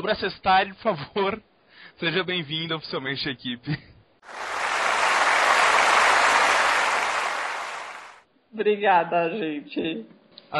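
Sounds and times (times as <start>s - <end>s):
speech: 0.0s - 4.5s, 8.5s - 10.5s
people clapping: 4.3s - 8.2s.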